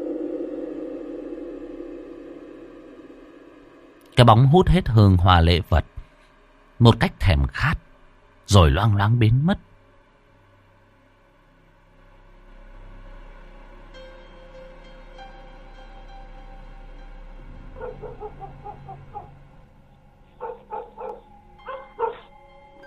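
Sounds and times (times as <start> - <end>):
low steady hum: 0.0 - 22.8
speech: 4.2 - 6.0, 6.8 - 7.8, 8.5 - 9.7
dogs barking in the night: 17.7 - 19.5, 20.3 - 22.4.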